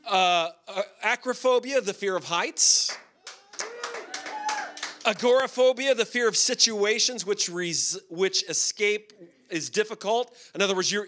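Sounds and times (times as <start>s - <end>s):
speech: 0.1s - 2.9s, 5.0s - 11.0s
crowd clapping: 2.8s - 5.6s
voices whooping and cheering: 3.2s - 5.0s.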